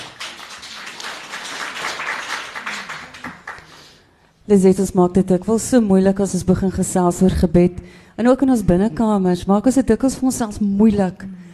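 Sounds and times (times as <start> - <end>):
crowd applauding: 0.0 - 4.0
speech: 4.5 - 11.3.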